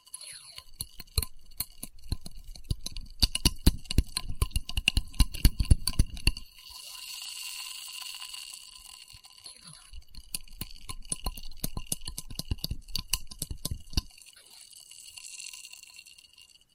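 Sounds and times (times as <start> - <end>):
glassy clicks and tapping on test tubes: 0.0 - 6.6, 9.9 - 14.2.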